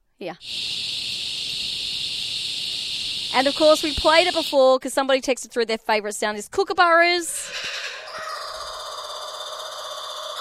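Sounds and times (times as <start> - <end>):
speech: 0.2 - 0.8, 3.3 - 7.6
dense chorus of cicadas buzzing: 0.4 - 4.8, 7.5 - 10.4.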